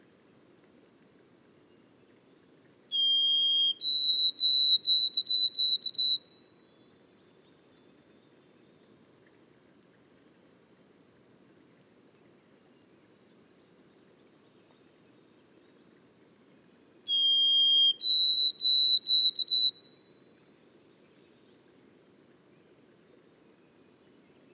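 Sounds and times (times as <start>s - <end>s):
White-throated sparrow whistled song in boreal forest: 2.9s - 6.4s, 17.1s - 20.0s.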